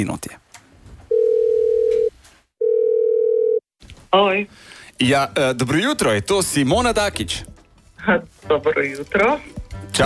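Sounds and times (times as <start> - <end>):
speech: 0.0 - 0.4, 4.1 - 10.0
outgoing phone call ringback tones: 1.1 - 3.6.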